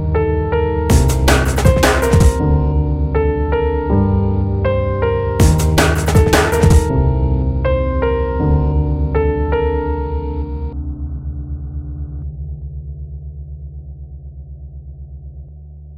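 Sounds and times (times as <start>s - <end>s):
piano: 0.0s - 12.3s
drum: 0.9s - 2.4s, 5.4s - 6.9s.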